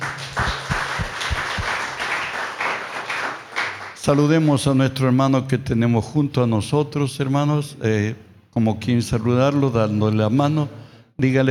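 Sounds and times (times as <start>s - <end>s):
audience applauding: 0.0s - 4.0s
speech: 4.0s - 11.4s.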